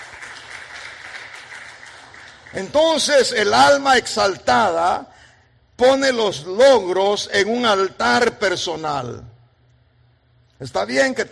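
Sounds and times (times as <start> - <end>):
church congregation clapping as an offering of applause to God: 0.0 - 3.7
speech: 2.5 - 5.1, 5.8 - 9.3, 10.6 - 11.3.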